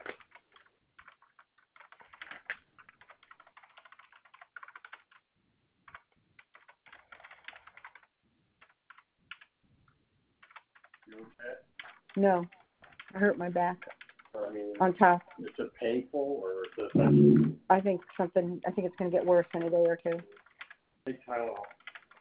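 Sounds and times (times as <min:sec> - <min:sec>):
fingers typing a complaint on a computer keyboard: 0:00.0 - 0:09.6, 0:10.4 - 0:14.5, 0:18.0 - 0:20.8, 0:21.5 - 0:22.1
speech: 0:11.2 - 0:12.6, 0:13.2 - 0:13.9, 0:14.8 - 0:20.4, 0:21.0 - 0:21.8.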